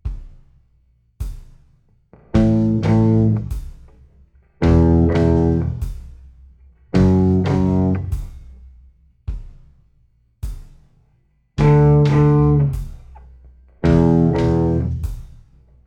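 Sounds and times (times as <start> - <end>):
slow guitar riff: 2.4 - 3.5, 4.6 - 5.8, 7.0 - 8.1, 11.6 - 12.8, 13.8 - 15.0.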